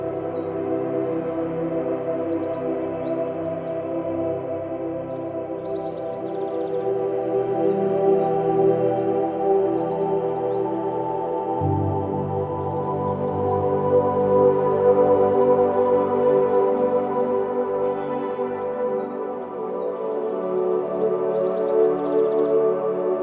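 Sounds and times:
forest nature sounds: 0.0 - 23.2
relaxing forest meditation sleep music: 0.0 - 23.2.

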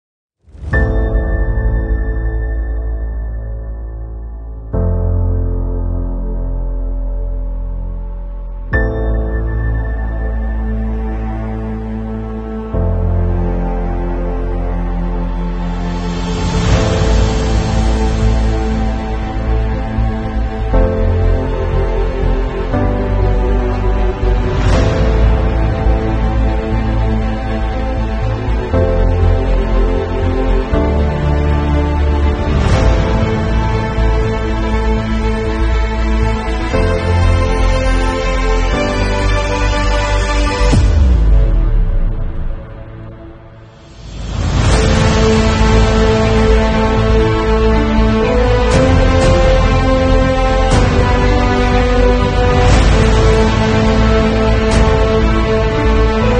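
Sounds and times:
epic powerful trailer music: 0.4 - 56.3.

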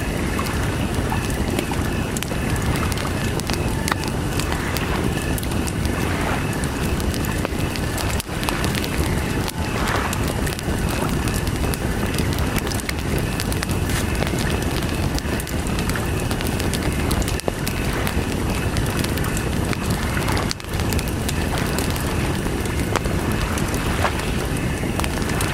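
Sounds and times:
campfire by the lake: 0.0 - 25.5
lake water: 0.0 - 25.5.

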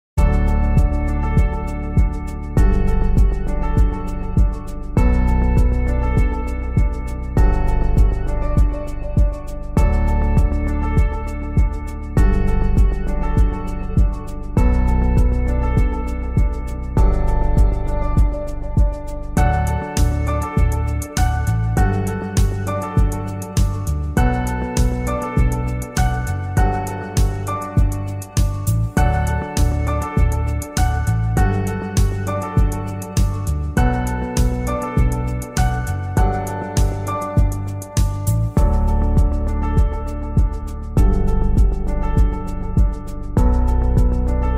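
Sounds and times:
corporate music loop: 0.2 - 44.5.

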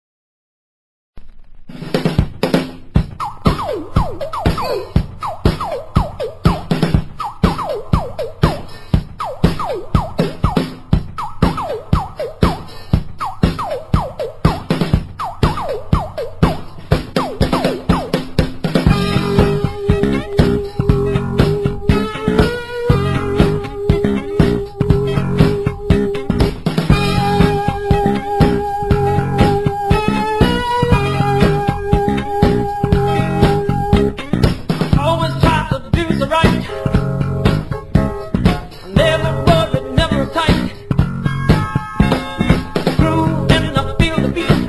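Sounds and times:
funk boogie music: 1.7 - 44.6.

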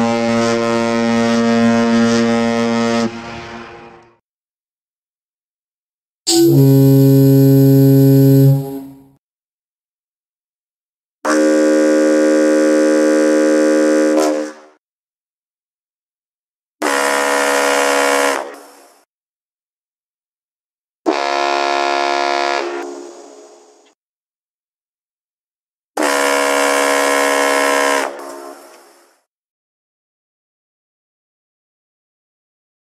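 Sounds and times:
boat horns: 0.0 - 4.2, 6.3 - 9.2, 11.3 - 14.8, 16.8 - 18.7, 21.1 - 23.4, 26.0 - 28.8.

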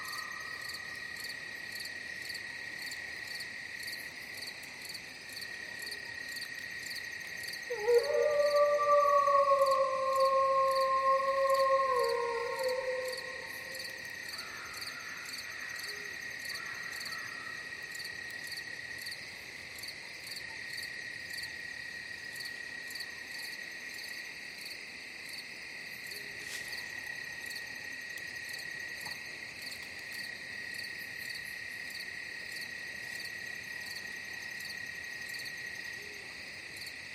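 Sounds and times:
wolf forest ambience: 5.5 - 18.8, 25.9 - 31.8.

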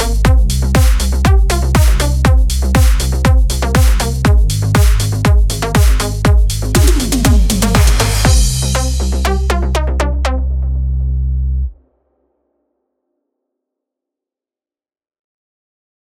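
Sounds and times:
synthwave background music: 0.0 - 11.7.

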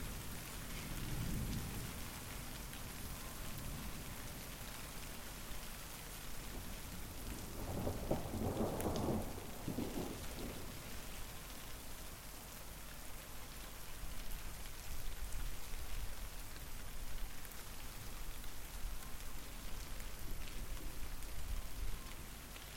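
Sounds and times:
rain: 0.0 - 22.7
thunder: 7.4 - 11.0.

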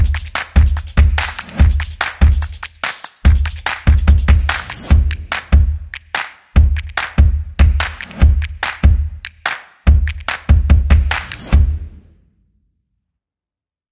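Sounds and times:
upbeat drums and percussion background music: 0.0 - 12.0.

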